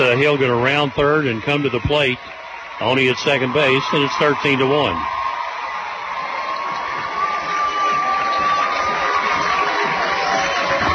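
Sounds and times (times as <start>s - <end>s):
home crowd cheering at baseball game: 0.0s - 10.9s
speech: 0.1s - 5.2s.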